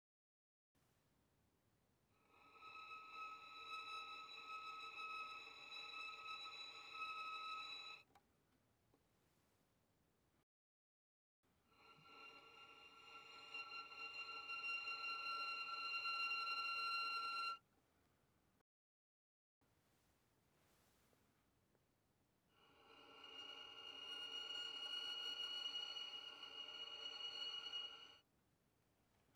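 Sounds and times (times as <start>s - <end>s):
violin arco pianissimo on the A string: 2.3s - 8.1s, 11.8s - 17.6s, 22.6s - 28.2s.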